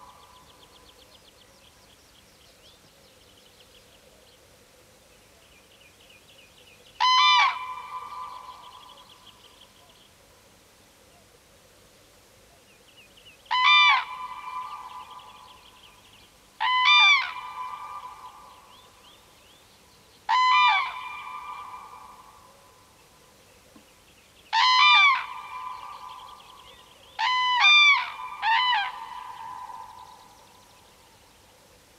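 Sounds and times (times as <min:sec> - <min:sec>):
Common crane trumpeting calls: 0:07.0 - 0:08.6, 0:13.5 - 0:15.2, 0:20.3 - 0:22.4, 0:24.5 - 0:26.3, 0:27.2 - 0:30.2.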